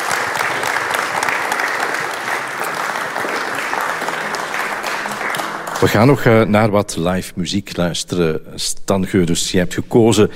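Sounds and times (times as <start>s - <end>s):
audience applause: 0.0s - 6.4s
speech: 5.8s - 10.3s.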